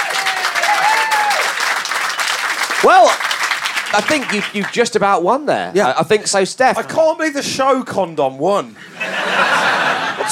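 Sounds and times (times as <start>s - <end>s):
crowd clapping: 0.0s - 5.2s
speech: 2.8s - 3.3s, 3.9s - 8.9s
laughter: 8.8s - 10.3s.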